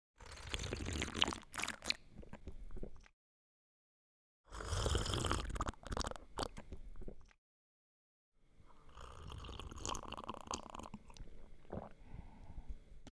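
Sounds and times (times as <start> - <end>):
slurping: 0.2 - 3.0, 4.5 - 7.2, 8.9 - 12.0.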